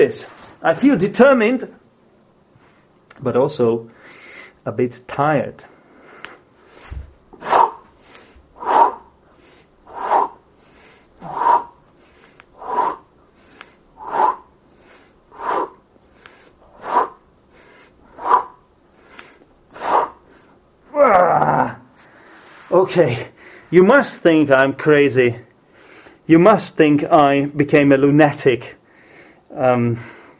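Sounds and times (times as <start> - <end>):
speech: 0.0 - 1.8, 3.2 - 4.0, 4.6 - 5.7, 22.9 - 25.5, 26.3 - 28.8, 29.5 - 30.2
heavy breathing and groaning during push-ups: 5.7 - 22.2.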